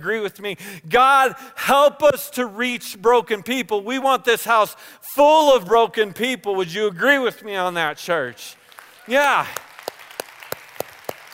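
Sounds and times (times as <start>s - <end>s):
speech: 0.0s - 9.6s
audience clapping: 8.6s - 11.3s.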